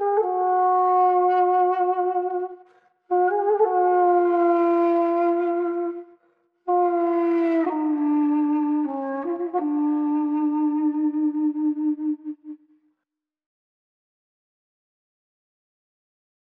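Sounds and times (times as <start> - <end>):
duduk: 0.0 - 12.6.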